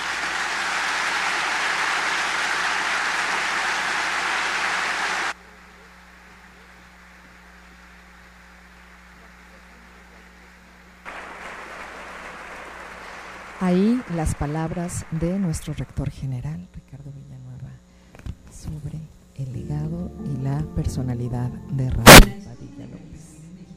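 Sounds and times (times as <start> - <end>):
audience applause: 0.0 - 5.4, 11.1 - 16.0
speech: 13.6 - 17.8, 18.6 - 19.8, 20.4 - 22.4.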